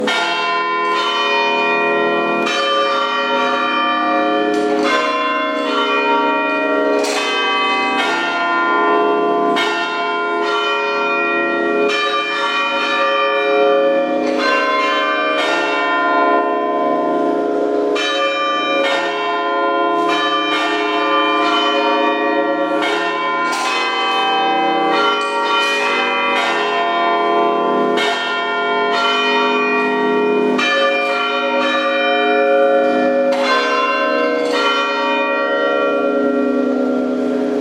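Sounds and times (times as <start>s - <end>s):
bells playing a hymn: 0.0s - 37.6s.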